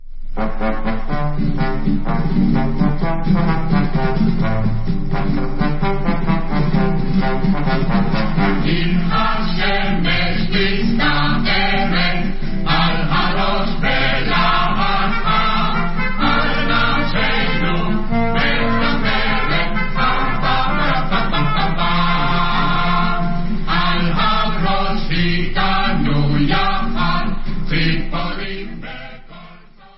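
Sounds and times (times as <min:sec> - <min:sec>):
quintet playing: 0:00.3 - 0:28.0.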